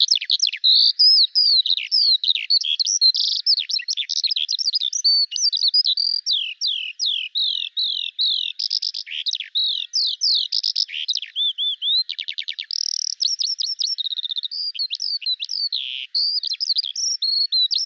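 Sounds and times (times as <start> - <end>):
bird singing rapidly: 0.0 - 17.8.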